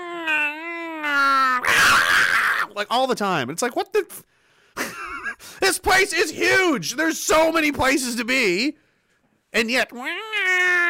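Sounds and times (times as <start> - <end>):
voice imitating fighting barn cats: 0.0 - 2.8, 9.9 - 10.8
speech: 2.8 - 4.4, 5.6 - 8.8, 9.5 - 10.7.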